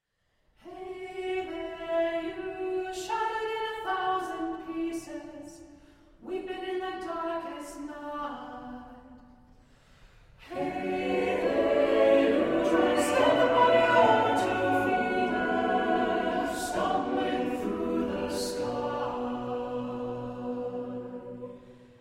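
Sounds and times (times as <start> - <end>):
vocal ensemble singing: 0.6 - 5.2, 10.4 - 21.9.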